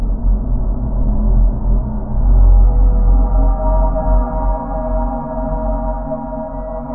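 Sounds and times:
squeaky metal designed spooky drone: 0:00.2 - 0:06.9.

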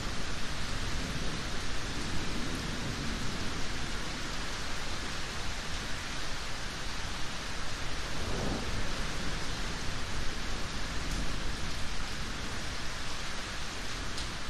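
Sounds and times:
long rumbles of thunder in a yard: 0:00.0 - 0:05.2, 0:08.0 - 0:12.7
rain in a yard: 0:00.0 - 0:14.4
wind in a yard: 0:00.0 - 0:14.4.

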